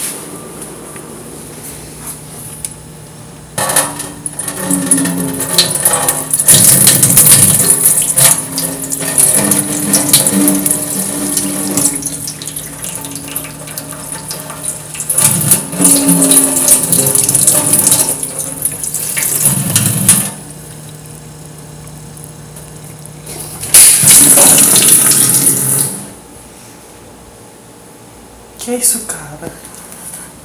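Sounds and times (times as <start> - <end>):
water: 4.2 - 26.0.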